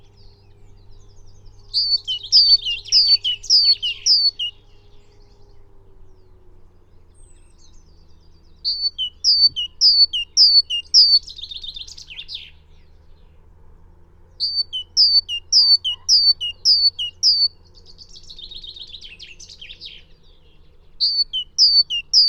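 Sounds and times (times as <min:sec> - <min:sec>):
great tit chattering: 0:01.8 - 0:04.5, 0:08.7 - 0:11.3, 0:14.4 - 0:17.5, 0:21.0 - 0:22.2.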